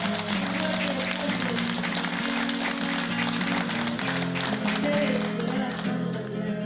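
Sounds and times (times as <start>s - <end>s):
audience applause: 0.0s - 6.5s.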